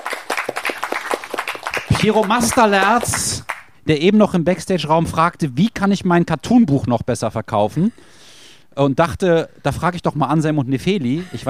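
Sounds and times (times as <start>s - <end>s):
audience applause: 0.0s - 3.6s
speech: 2.0s - 8.2s, 8.8s - 11.4s.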